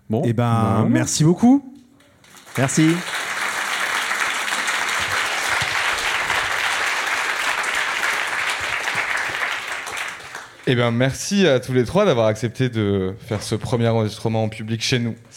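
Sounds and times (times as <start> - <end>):
speech: 0.1 - 1.7, 2.6 - 3.2, 10.7 - 15.3
audience applause at a live public podcast recording: 2.2 - 10.7.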